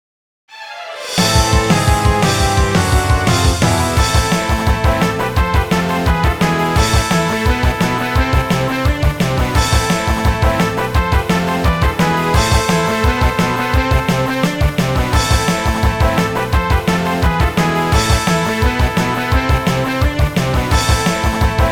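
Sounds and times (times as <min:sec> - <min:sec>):
tower boss battle game music: 0:00.6 - 0:21.7.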